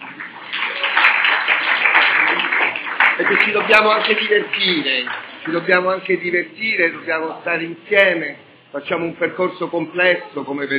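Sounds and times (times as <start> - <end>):
audience applause: 0.0 - 5.7
speech: 3.2 - 10.7.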